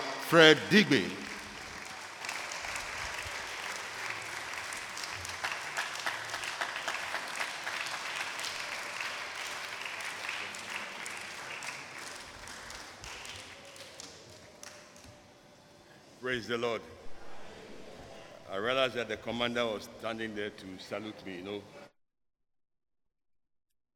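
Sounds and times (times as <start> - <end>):
audience applauding: 0.0 - 15.0
speech: 0.3 - 1.2, 16.4 - 17.0, 18.5 - 21.8.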